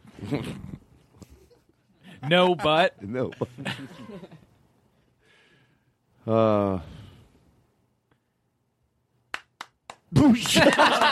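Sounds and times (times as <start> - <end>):
speech: 0.3 - 0.7, 2.2 - 4.4, 6.3 - 7.0, 10.2 - 11.0
laughter: 1.3 - 4.5, 10.4 - 11.0
applause: 9.3 - 11.0.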